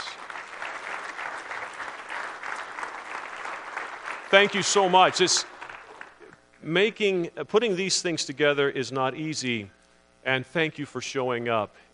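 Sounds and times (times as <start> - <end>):
round of applause: 0.0 - 6.4
speech: 4.3 - 5.5, 6.6 - 11.9.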